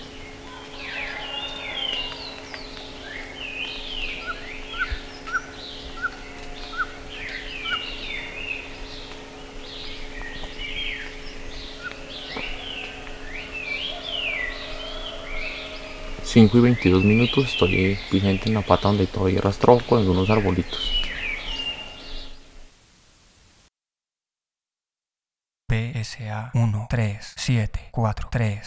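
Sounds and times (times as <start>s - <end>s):
birds warbling: 0.0s - 22.6s
low hum: 0.0s - 23.7s
speech: 16.4s - 20.9s, 26.9s - 28.6s.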